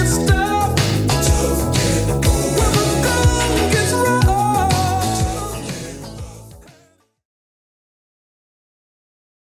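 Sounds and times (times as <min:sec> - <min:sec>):
80s drum loop at 122 bpm: 0:00.0 - 0:06.7.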